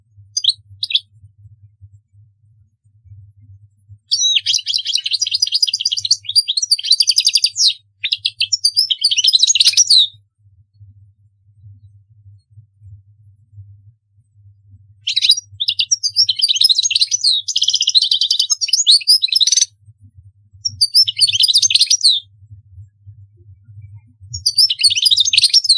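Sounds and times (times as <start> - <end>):
faint low hum: 0.0 - 9.0, 9.7 - 25.7
European goldfinch twittering song: 0.4 - 1.0, 4.1 - 10.1, 15.1 - 19.7, 20.6 - 22.2, 24.3 - 25.7.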